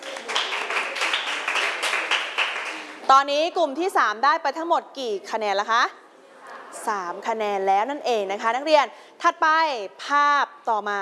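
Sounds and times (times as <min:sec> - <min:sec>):
students in a classroom clapping: 0:00.0 - 0:03.0
speech: 0:03.1 - 0:06.0, 0:06.8 - 0:10.9.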